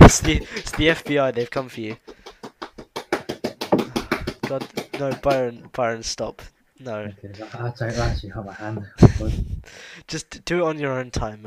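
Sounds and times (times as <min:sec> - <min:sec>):
speech: 0:00.1 - 0:02.1, 0:04.5 - 0:11.4
knuckles knocking on a table: 0:02.0 - 0:05.4.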